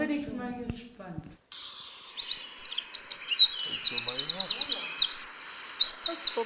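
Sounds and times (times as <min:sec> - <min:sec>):
speech: 0:00.1 - 0:01.7
Eurasian wren singing: 0:01.5 - 0:06.4.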